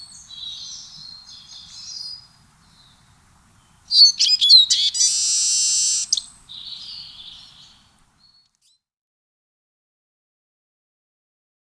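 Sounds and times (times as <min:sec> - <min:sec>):
siskin singing: 0:00.0 - 0:08.4.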